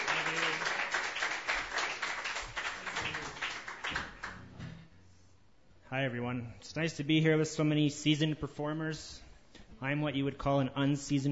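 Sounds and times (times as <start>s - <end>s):
open mic audience applause: 0.0s - 4.6s
speech: 6.0s - 9.2s, 9.8s - 11.3s.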